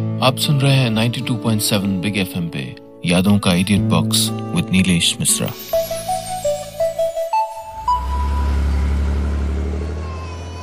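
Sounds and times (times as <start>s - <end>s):
speech: 0.2s - 5.9s
short rising electronic tones: 5.5s - 9.8s
car engine rumble as the car is driven to a hospital: 7.7s - 10.6s.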